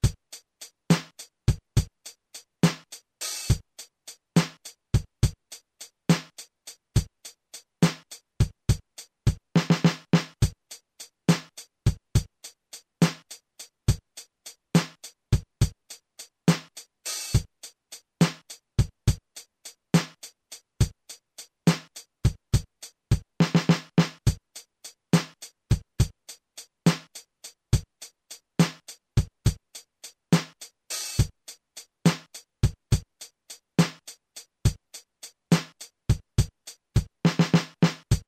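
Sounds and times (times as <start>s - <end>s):
drums playing a ballad: 0.0s - 38.2s.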